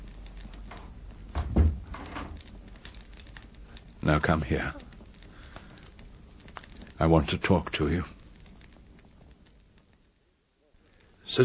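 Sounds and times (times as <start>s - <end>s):
door being closed: 1.3s - 2.4s
speech: 4.0s - 4.9s, 7.0s - 8.2s.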